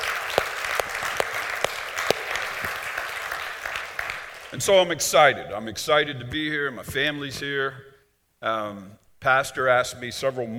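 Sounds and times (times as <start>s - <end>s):
audience applause: 0.0s - 4.7s
speech: 4.5s - 10.5s.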